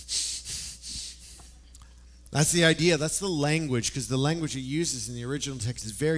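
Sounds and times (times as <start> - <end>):
person imitating angry heavy breathing through the nose: 0.0 - 1.6
speech: 2.3 - 6.1.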